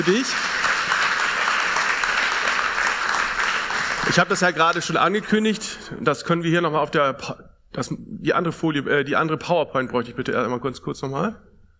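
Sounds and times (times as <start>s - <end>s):
speech: 0.0s - 0.6s, 4.1s - 11.5s
thunderous audience applause: 0.0s - 4.9s.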